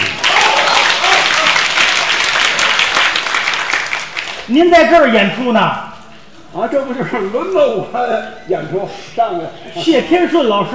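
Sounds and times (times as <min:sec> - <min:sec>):
audience applause: 0:00.0 - 0:04.5
speech: 0:04.5 - 0:05.8, 0:06.5 - 0:10.7.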